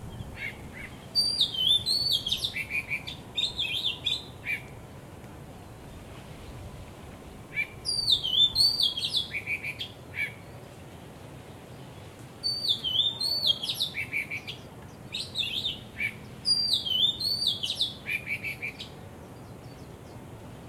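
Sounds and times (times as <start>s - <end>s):
birds singing: 0.0s - 4.7s, 7.5s - 10.6s, 11.8s - 20.5s.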